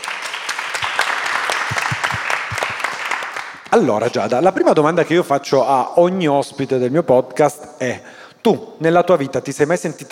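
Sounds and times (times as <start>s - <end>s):
crowd applauding: 0.0s - 3.7s
speech: 3.7s - 10.1s.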